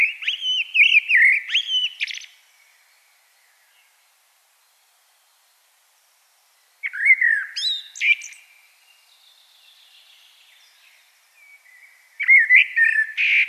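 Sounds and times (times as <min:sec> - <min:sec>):
common blackbird whistled song: 0:00.0 - 0:02.4, 0:06.8 - 0:08.5, 0:09.7 - 0:13.4.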